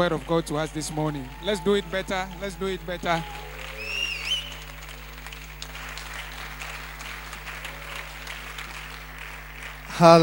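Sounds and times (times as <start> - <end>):
speech: 0.0 - 3.5, 10.0 - 10.2
church congregation applauding in a standing ovation: 0.0 - 10.2
constant low electrical hum: 0.0 - 10.2
whistle: 3.1 - 4.8.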